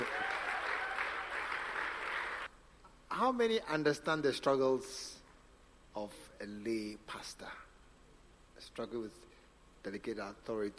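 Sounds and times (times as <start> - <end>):
audience clapping: 0.0 - 2.5
speech: 3.2 - 5.2, 6.0 - 7.7, 8.6 - 10.7.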